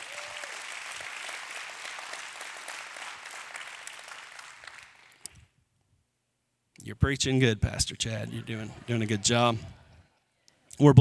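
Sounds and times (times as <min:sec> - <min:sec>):
audience applause: 0:00.0 - 0:05.3, 0:08.3 - 0:09.9
speech: 0:06.9 - 0:09.8, 0:10.8 - 0:11.0
laughter: 0:07.8 - 0:10.3.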